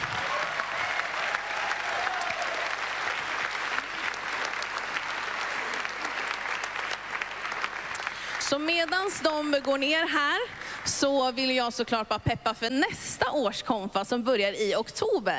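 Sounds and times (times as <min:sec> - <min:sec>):
crowd applauding: 0:00.0 - 0:11.1
speech: 0:08.5 - 0:15.3.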